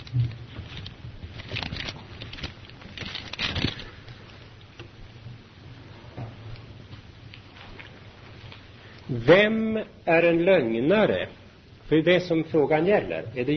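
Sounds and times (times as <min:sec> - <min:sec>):
flipping through book pages: 0:00.0 - 0:04.9, 0:06.9 - 0:09.0
speech: 0:09.2 - 0:13.5.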